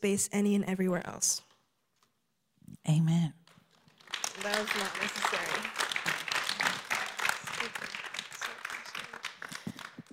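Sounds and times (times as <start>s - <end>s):
speech: 0.0s - 1.5s, 2.8s - 3.4s, 4.4s - 5.8s
crowd applauding: 3.7s - 10.1s.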